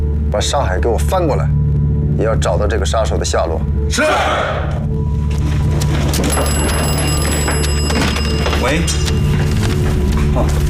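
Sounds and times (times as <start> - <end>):
speech: 0.3 - 1.6, 2.2 - 5.0, 6.2 - 7.0, 8.6 - 9.1, 10.4 - 10.6
shrill bell-like telephone ring: 5.8 - 10.0.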